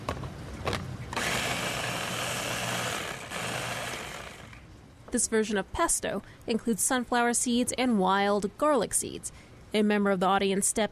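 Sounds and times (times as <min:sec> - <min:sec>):
blender blending wild greens: 0:01.2 - 0:04.6
speech: 0:05.1 - 0:10.8.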